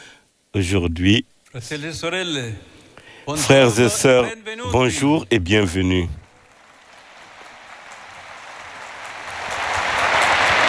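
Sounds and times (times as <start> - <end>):
speech: 0.5 - 6.2
sustained applause from an audience: 5.5 - 10.6.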